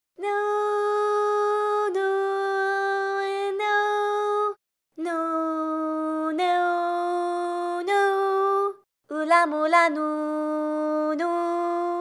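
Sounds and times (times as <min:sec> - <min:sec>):
person singing: 0:00.2 - 0:11.9.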